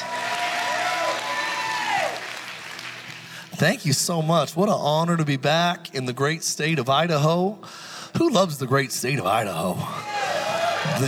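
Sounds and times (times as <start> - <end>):
audience hand clapping: 0.0 - 4.4, 10.0 - 11.0
speech: 3.6 - 10.1, 10.8 - 11.0.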